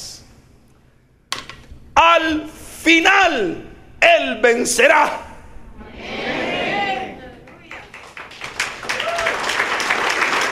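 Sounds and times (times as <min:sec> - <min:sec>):
speech: 0:02.2 - 0:05.2
audience clapping for Pope Benedict XVI: 0:07.4 - 0:10.5.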